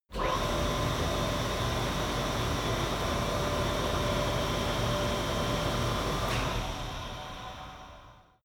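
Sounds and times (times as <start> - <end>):
flue gas installation starting, running and stopping: 0.2 - 8.4.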